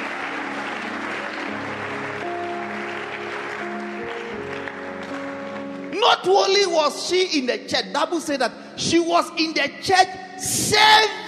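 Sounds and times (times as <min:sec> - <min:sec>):
church audience clapping: 0:00.0 - 0:06.4
speech: 0:06.0 - 0:11.2.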